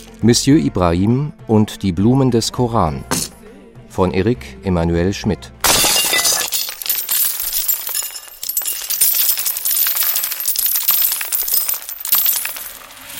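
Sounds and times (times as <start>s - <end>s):
speech: 0.2s - 3.4s, 4.0s - 5.6s
porcelain piggy bank smashed: 5.6s - 13.1s
coins spilling and clattering: 5.8s - 13.1s.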